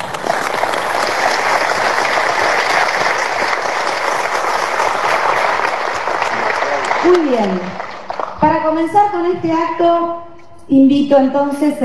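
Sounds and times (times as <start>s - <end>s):
audience applause in a theatre: 0.0s - 8.4s
speech: 7.1s - 7.7s, 8.8s - 11.8s.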